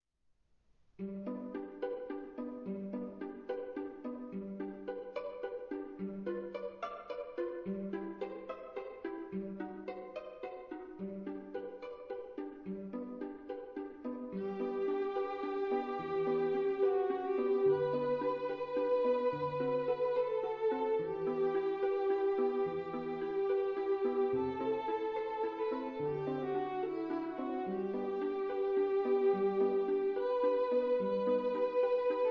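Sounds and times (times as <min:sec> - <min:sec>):
string quartet: 0:01.0 - 0:32.3.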